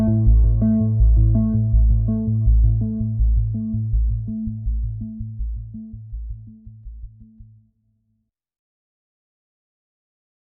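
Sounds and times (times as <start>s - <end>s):
wet arpeggiated bass: 0.0s - 7.6s.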